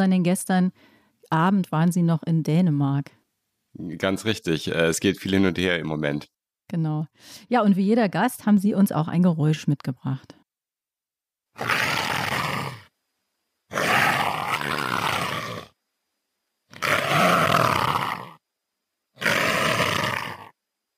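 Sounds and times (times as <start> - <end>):
speech: 0.0 - 3.2, 3.8 - 10.4, 11.6 - 11.8
leopard hissing: 11.6 - 12.9, 13.7 - 15.7, 16.7 - 18.4, 19.2 - 20.5.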